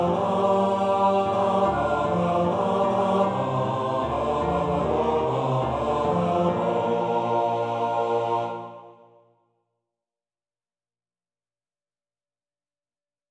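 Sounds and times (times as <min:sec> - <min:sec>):
baritone singing a carol: 0:00.0 - 0:08.8.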